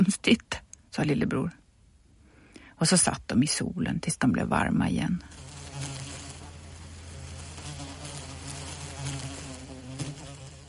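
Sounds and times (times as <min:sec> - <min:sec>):
speech: 0:00.2 - 0:01.6, 0:02.8 - 0:05.4
horseflies buzzing: 0:05.2 - 0:10.6.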